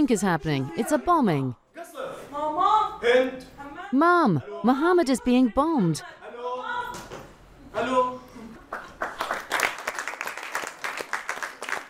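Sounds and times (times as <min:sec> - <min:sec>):
speech: 0:00.0 - 0:06.2, 0:07.8 - 0:08.2
audience applause after a play: 0:08.7 - 0:11.8.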